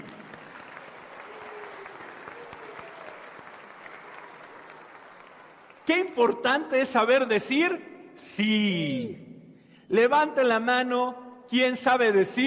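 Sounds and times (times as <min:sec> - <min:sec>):
group applauding: 0:00.0 - 0:06.1
speech: 0:05.9 - 0:09.2, 0:09.9 - 0:12.4.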